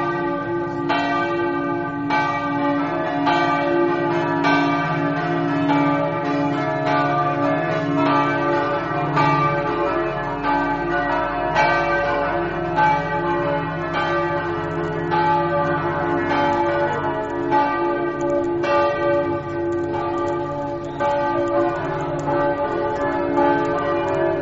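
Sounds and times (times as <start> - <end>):
church bells ringing: 0.0 - 24.4.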